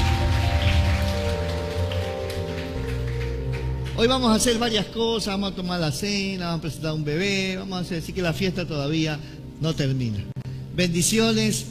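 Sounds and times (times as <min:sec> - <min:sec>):
audience applause: 0:00.0 - 0:04.5
speech: 0:04.0 - 0:11.6.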